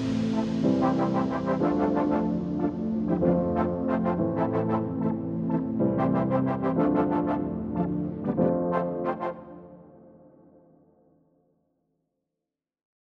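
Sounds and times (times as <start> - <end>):
future bass music: 0.0 - 9.0.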